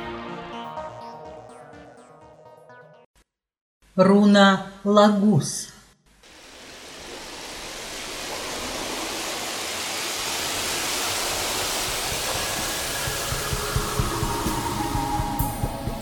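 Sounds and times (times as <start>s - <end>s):
speech: 4.0s - 5.7s
flowing water in nature: 6.2s - 15.7s.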